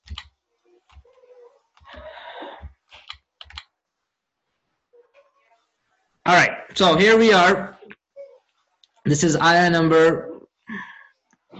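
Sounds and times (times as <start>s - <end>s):
computer mouse clicking: 2.9s - 3.7s
speech: 6.3s - 7.8s, 9.1s - 10.3s.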